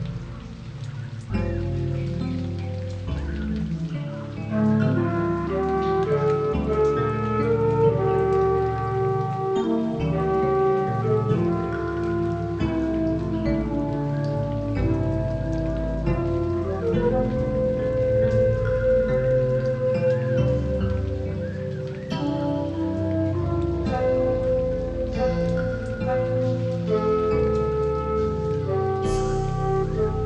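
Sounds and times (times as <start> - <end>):
tropical rainforest zen spa music: 0.0 - 30.2.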